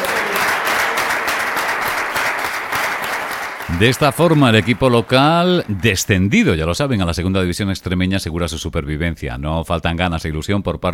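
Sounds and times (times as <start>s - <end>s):
applause: 0.0s - 6.7s
speech: 3.7s - 10.9s.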